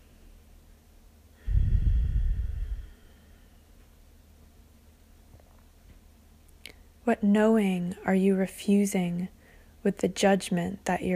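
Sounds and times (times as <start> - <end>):
deep breath through nose: 1.4 - 3.6
speech: 7.1 - 11.1.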